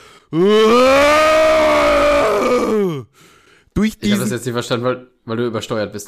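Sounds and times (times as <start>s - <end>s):
speech: 0.3s - 1.1s, 4.0s - 6.0s
man imitating a bear's roar: 0.3s - 3.1s.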